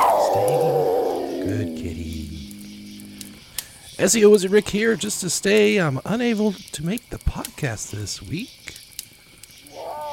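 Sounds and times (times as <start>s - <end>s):
big wild cat growling: 0.0s - 3.6s
speech: 0.4s - 0.8s, 4.0s - 8.7s.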